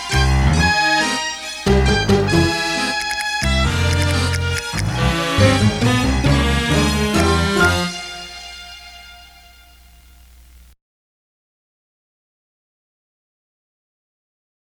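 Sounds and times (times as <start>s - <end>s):
Spanish waltz music: 0.2s - 10.6s.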